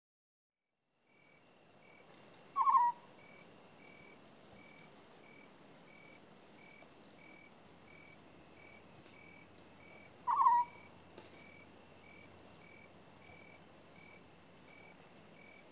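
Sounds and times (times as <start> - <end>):
African scops owl rolling purrs: 2.6 - 4.2, 9.9 - 10.9.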